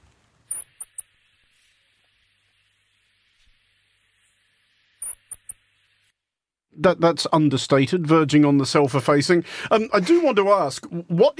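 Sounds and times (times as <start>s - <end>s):
steady soft hiss: 0.0s - 6.2s
New Zealand Bird of the Year high-pitched chirps: 0.5s - 1.1s, 5.0s - 5.6s
speech: 6.7s - 11.3s.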